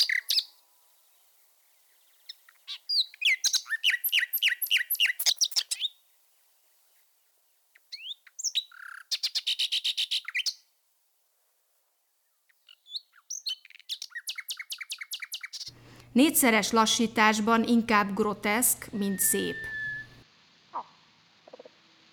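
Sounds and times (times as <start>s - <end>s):
common nightingale singing: 0.0s - 6.0s, 7.8s - 10.6s, 12.5s - 15.7s, 17.2s - 20.2s
speech: 16.2s - 19.7s.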